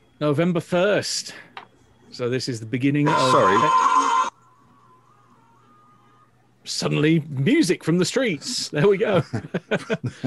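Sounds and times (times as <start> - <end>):
faint lingering hum: 0.0 - 10.2
speech: 0.2 - 1.5, 2.1 - 4.0, 6.7 - 10.2
electronic alarm buzzing: 3.0 - 4.4
laughter: 8.8 - 10.2.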